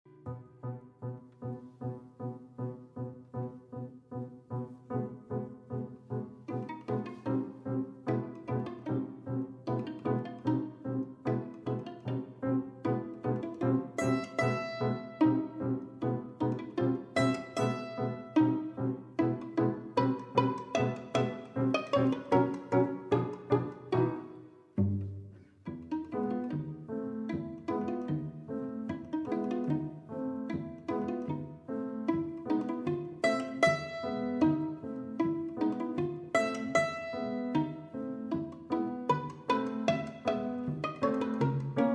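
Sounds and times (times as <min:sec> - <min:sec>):
piano trio playing: 0:00.1 - 0:41.9.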